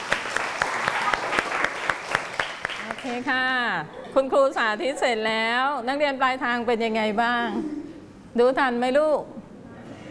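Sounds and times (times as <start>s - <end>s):
students in a classroom clapping for a classmate: 0.0s - 3.3s
speech: 3.0s - 7.8s, 8.4s - 9.4s.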